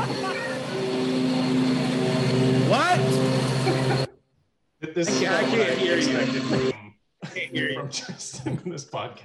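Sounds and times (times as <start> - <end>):
lawn mower engine droning: 0.0 - 4.1, 5.0 - 6.7
laughter: 3.5 - 4.2, 4.9 - 9.2
speech: 5.0 - 6.7, 7.5 - 9.2.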